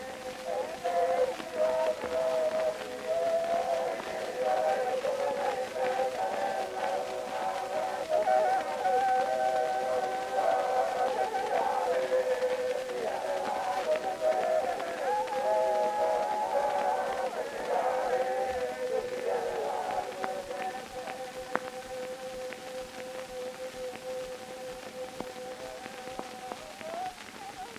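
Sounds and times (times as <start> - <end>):
Tahitian chorus singing on an Edison Blue Amberol cylinder recording: 0.0 - 27.7.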